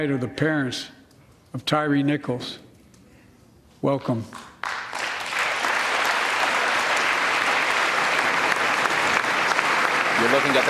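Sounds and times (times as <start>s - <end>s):
speech: 0.0s - 2.6s, 3.8s - 4.5s, 10.2s - 10.6s
applause and standing ovation at the State of the Union address: 4.6s - 10.6s.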